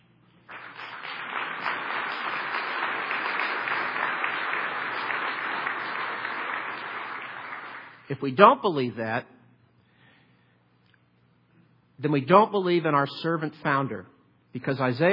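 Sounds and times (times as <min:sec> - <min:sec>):
audience applause: 0:00.5 - 0:08.0
speech: 0:08.1 - 0:09.4, 0:12.0 - 0:15.1.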